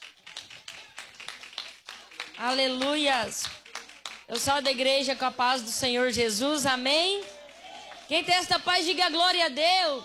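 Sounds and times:
audience clapping hands during a church service: 0.0s - 5.4s, 6.7s - 8.9s
speech: 2.4s - 3.6s, 4.3s - 7.3s, 8.1s - 10.0s.

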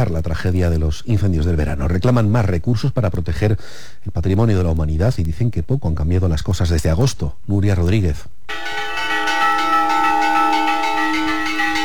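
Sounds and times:
speech: 0.0s - 9.0s
church bell ringing a fire alarm toll: 8.5s - 11.8s.

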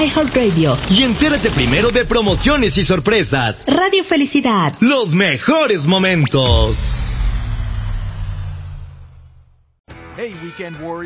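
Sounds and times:
speech: 0.0s - 7.2s, 10.2s - 11.0s
Nissan Armada Pro 4X twin-turbo V6 engine rumbling: 6.4s - 9.8s.

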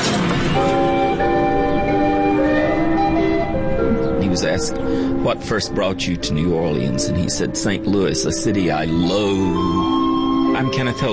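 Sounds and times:
pinball machine bells ringing: 0.0s - 5.6s, 8.8s - 11.1s
speech: 4.4s - 10.0s, 10.6s - 11.1s.

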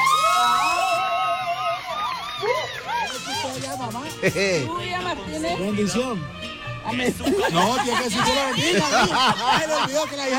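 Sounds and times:
applause and cheering: 0.0s - 3.5s
speech: 3.5s - 10.3s
laughter: 7.0s - 10.3s.

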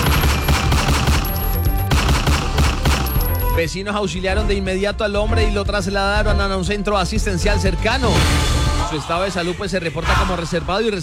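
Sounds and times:
burst of gunfire: 0.0s - 3.4s
speech: 3.6s - 11.0s.

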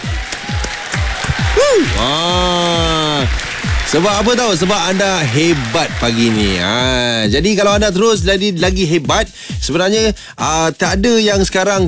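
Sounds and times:
audience applause: 0.0s - 7.1s
speech: 1.8s - 3.3s, 3.9s - 11.8s.

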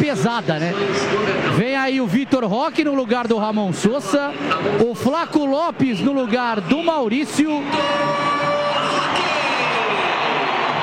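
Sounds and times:
speech: 0.0s - 8.4s
crowd of fans cheering at Arena Alviverde: 5.9s - 10.8s.

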